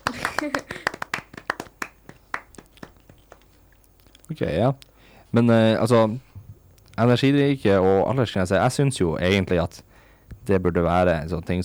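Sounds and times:
crowd clapping: 0.0 - 3.5
speech: 0.4 - 0.8, 4.3 - 6.3, 7.0 - 11.6.

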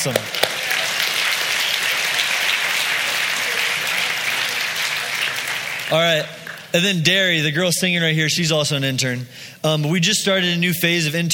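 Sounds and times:
speech: 0.0 - 0.4, 5.9 - 11.3
audience clapping: 0.0 - 6.9.

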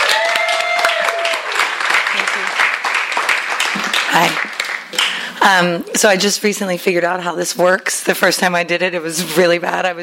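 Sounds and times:
audience clapping to welcome an author at a bookstore reading: 0.0 - 5.5
speech: 4.2 - 4.4, 5.4 - 10.0.

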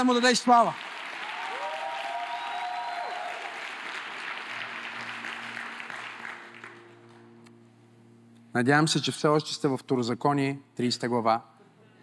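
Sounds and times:
speech: 0.0 - 0.9, 8.6 - 11.5
church congregation applauding during a sermon: 0.0 - 7.3.

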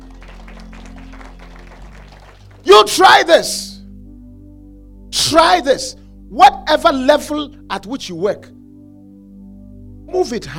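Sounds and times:
audience clapping: 0.0 - 2.7
speech: 2.8 - 3.7, 5.3 - 8.6, 10.1 - 10.5.

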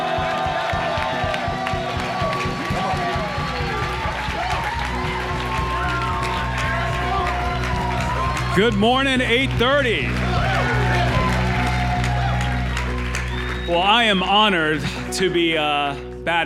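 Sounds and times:
whoops: 0.0 - 8.8, 10.2 - 13.8
audience applause: 0.0 - 15.1
tonal music: 0.0 - 16.4
speech: 8.6 - 10.5, 13.7 - 16.4.

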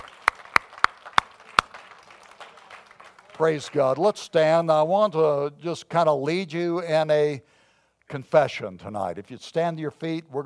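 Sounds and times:
sharp hand claps: 0.0 - 3.4
speech: 3.4 - 10.4.

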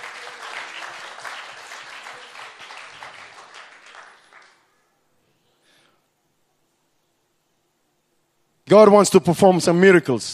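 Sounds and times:
audience clapping: 0.0 - 4.7
speech: 8.7 - 10.3.

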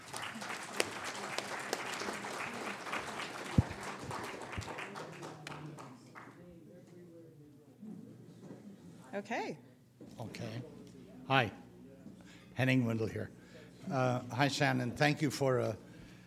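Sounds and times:
audience applause: 0.0 - 6.3
speech: 9.2 - 11.6, 12.6 - 15.8.

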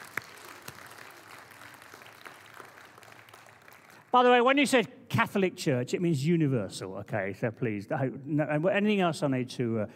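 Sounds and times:
audience applause: 0.0 - 4.1
speech: 4.1 - 9.9.

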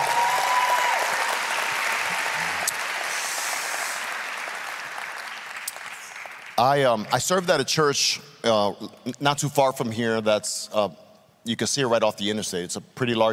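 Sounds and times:
audience hand clapping: 0.0 - 7.6
speech: 6.6 - 13.3.

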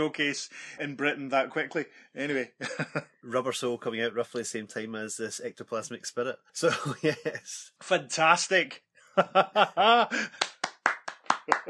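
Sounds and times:
speech: 0.0 - 10.5
laughter: 2.6 - 3.6, 6.6 - 7.7, 9.2 - 10.6
applause: 10.3 - 11.6.

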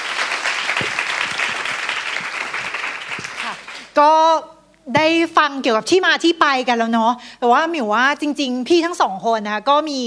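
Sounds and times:
audience applause: 0.0 - 3.9
speech: 4.0 - 10.0.

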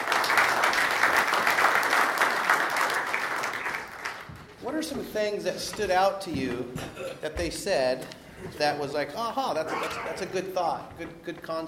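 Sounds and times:
audience applause: 0.0 - 4.5
speech: 4.8 - 11.6.

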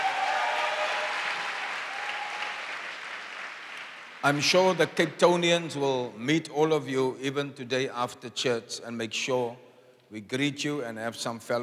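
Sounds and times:
audience applause: 0.0 - 4.4
speech: 4.2 - 11.6.

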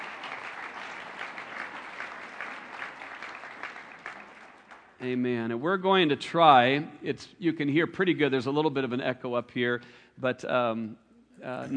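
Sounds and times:
audience applause for guests: 0.0 - 5.0
speech: 5.0 - 11.7.

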